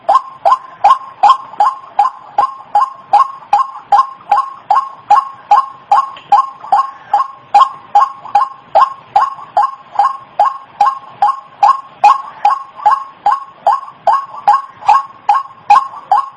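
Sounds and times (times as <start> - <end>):
white-breasted waterhen giving harsh repeated chattering notes: 0.0 - 16.3.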